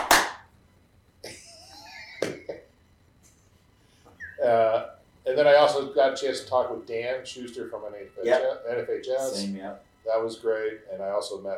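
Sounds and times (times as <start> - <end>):
hand claps: 0.0 - 0.4, 2.2 - 2.5
speech: 4.4 - 11.5.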